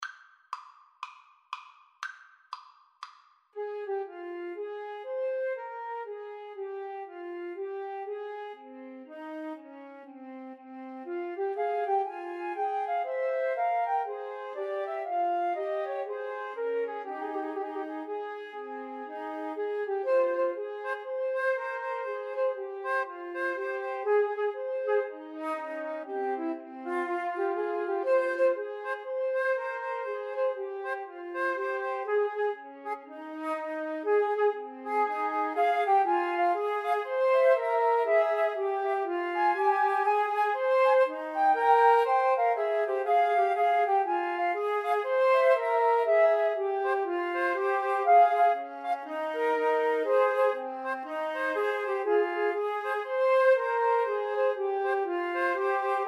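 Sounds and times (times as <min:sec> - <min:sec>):
flute trio playing a baroque bourree: 0:11.4 - 0:56.0.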